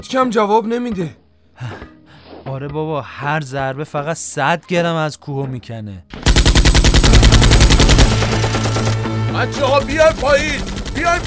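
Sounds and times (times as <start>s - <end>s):
speech: 0.0s - 1.8s, 2.5s - 6.2s, 9.4s - 11.2s
gunfire from several directions: 6.1s - 11.2s.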